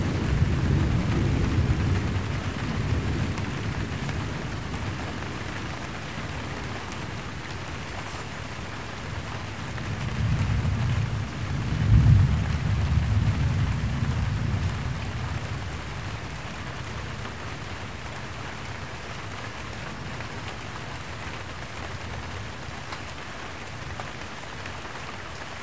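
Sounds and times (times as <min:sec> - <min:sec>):
thunder: 0:00.0 - 0:05.0, 0:10.0 - 0:15.7
light rain: 0:00.0 - 0:25.6.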